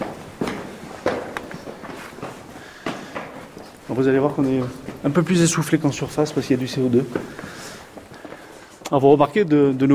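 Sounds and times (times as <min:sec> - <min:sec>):
shoes scuffing on stairs: 0:00.0 - 0:05.5, 0:06.2 - 0:08.8
footsteps climbing a short flight of stairs underground: 0:00.0 - 0:09.4
speech: 0:04.0 - 0:07.5, 0:08.9 - 0:09.9.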